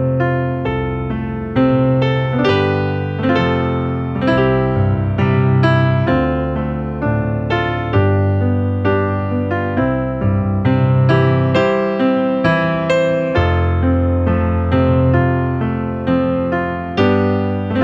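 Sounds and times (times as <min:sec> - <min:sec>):
66bpm backing track music: 0:00.0 - 0:17.8.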